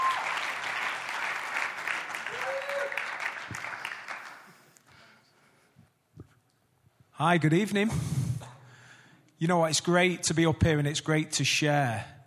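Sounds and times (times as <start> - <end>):
church congregation applauding to welcome a speaker: 0.0 - 4.8
speech: 7.2 - 8.2, 9.4 - 12.2.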